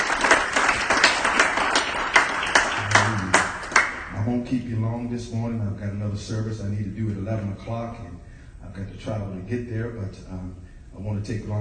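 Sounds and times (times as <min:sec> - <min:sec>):
room full of people applauding: 0:00.0 - 0:04.1
speech: 0:04.3 - 0:11.5.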